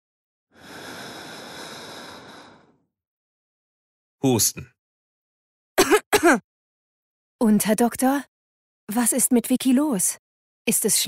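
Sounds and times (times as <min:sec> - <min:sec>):
slow exhale: 0:00.6 - 0:02.8
speech: 0:04.2 - 0:04.8, 0:07.5 - 0:08.3, 0:08.9 - 0:11.0.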